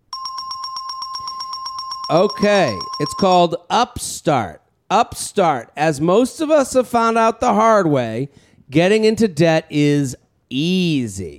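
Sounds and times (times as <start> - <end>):
bell ringing: 0.0 - 3.5
speech: 2.1 - 11.3.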